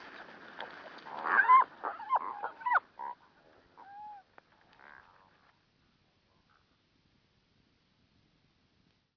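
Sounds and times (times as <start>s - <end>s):
cormorants croaking in a chorus of nasal honking croaks: 1.1s - 5.5s.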